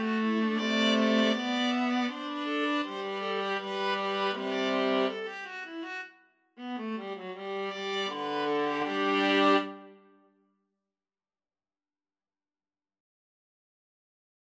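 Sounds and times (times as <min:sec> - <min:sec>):
viola trio playing a gavotte: 0:00.0 - 0:06.0, 0:06.6 - 0:09.9.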